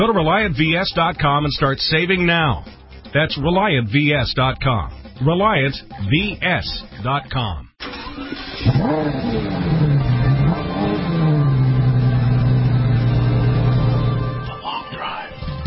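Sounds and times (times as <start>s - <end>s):
speech: 0.0s - 10.1s
Mercedes E63 AMG sports car engine revving: 8.0s - 14.5s.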